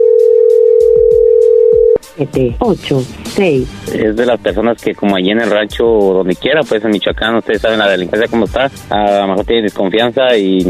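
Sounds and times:
telephone ringing tone: 0:00.0 - 0:02.0
speech: 0:02.2 - 0:10.6.

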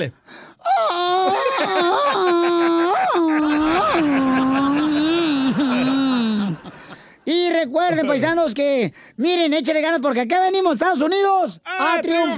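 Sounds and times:
speech: 0:00.0 - 0:04.7, 0:06.6 - 0:12.3
person yelling a Mexican grito: 0:01.3 - 0:06.5
laughter: 0:01.3 - 0:08.4.

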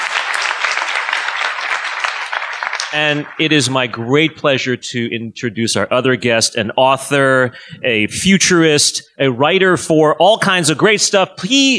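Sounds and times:
audience applause: 0:00.0 - 0:04.0
speech: 0:02.9 - 0:11.7.

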